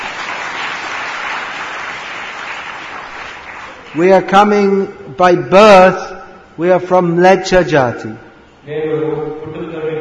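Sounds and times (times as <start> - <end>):
audience clapping: 0.0 - 4.5
speech: 3.9 - 9.5.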